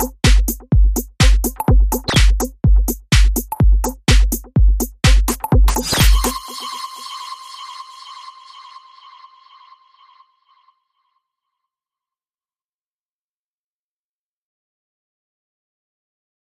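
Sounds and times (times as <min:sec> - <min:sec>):
instrumental beat: 0:00.0 - 0:08.9.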